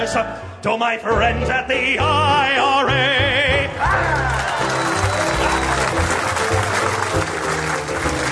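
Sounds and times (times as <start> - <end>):
speech: 0.2 - 4.4
audience hissing at a pun: 4.1 - 8.2.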